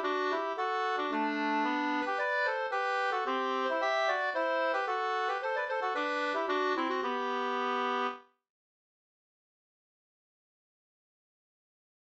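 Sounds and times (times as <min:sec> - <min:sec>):
polska dance tune: 0:00.0 - 0:08.2.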